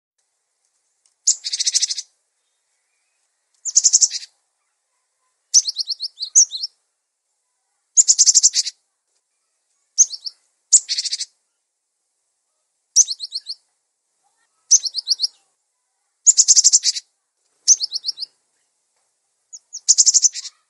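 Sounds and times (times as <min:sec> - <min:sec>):
songbird twittering: 0:01.2 - 0:06.8, 0:08.0 - 0:08.8, 0:10.0 - 0:11.6, 0:13.0 - 0:13.7, 0:14.6 - 0:15.5, 0:16.2 - 0:18.7, 0:19.5 - 0:20.6.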